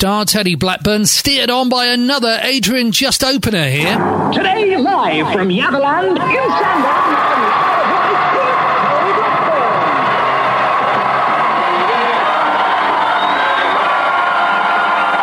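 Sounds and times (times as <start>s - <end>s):
speech: 0.0s - 7.2s
large outdoor crowd cheering: 3.9s - 15.2s.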